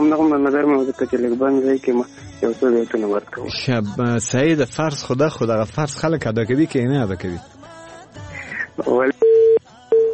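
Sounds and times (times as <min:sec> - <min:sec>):
speech: 0:00.1 - 0:07.6, 0:08.8 - 0:09.2
telephone busy tone after a radio call-in line disconnects: 0:09.2 - 0:10.1.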